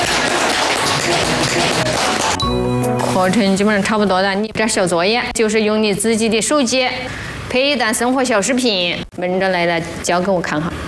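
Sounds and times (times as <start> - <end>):
applause: 0.0 - 2.4
speech: 2.5 - 10.8.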